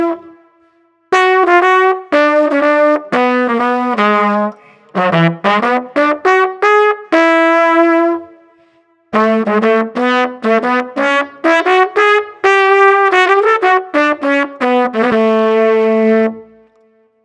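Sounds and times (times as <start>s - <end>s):
street trumpet melody: 0.0s - 0.5s, 1.1s - 8.4s, 9.1s - 16.7s.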